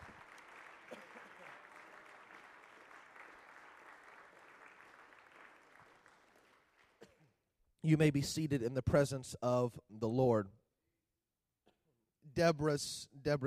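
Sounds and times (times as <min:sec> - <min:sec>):
audience clapping hands: 0:00.0 - 0:07.2
speech: 0:07.8 - 0:10.6, 0:12.4 - 0:13.4.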